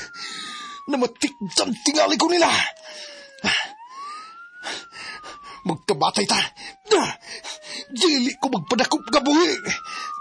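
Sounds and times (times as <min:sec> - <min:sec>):
police siren: 0:00.0 - 0:10.1
speech: 0:00.9 - 0:03.8, 0:05.6 - 0:09.9.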